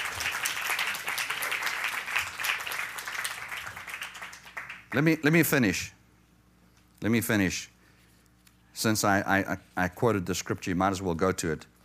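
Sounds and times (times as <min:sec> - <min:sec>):
audience applause: 0:00.0 - 0:05.0
speech: 0:04.9 - 0:06.0, 0:07.0 - 0:07.8, 0:08.8 - 0:11.7.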